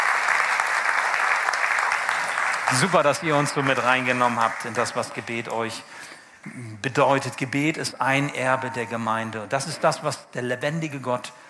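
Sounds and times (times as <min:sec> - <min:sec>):
crowd applause: 0:00.0 - 0:05.8
speech: 0:02.7 - 0:11.4.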